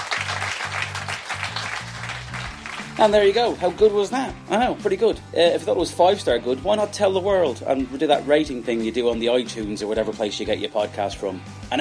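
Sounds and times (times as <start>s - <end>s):
audience applause for the host at the close of a live show: 0.0s - 3.2s
speech: 3.0s - 11.8s.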